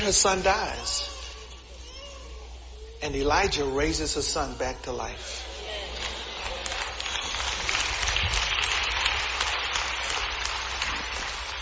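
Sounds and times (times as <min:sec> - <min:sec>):
speech: 0:00.1 - 0:01.1, 0:03.0 - 0:05.5
audience clapping: 0:05.8 - 0:11.5.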